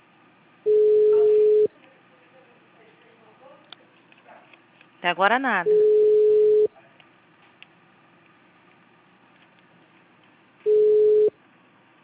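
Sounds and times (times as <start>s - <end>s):
telephone tone signal beeps: 0.7s - 1.7s, 5.7s - 6.7s, 10.7s - 11.3s
speech: 5.0s - 6.0s.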